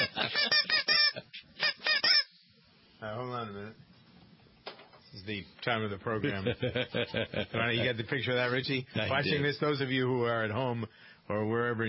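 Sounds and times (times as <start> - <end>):
laughter: 0.0 - 1.5, 6.2 - 8.2
little squeaky horn honking: 0.0 - 2.3
speech: 5.3 - 11.8.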